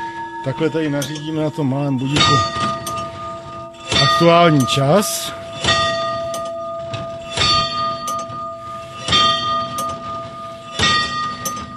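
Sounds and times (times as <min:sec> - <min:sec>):
tower clock mechanism striking the bell: 0:00.0 - 0:11.7
speech: 0:00.4 - 0:02.8, 0:04.2 - 0:05.4
tower clock mechanism clatter: 0:00.9 - 0:11.7.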